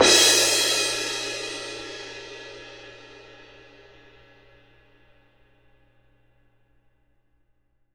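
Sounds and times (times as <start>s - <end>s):
cymbal: 0.0s - 5.6s.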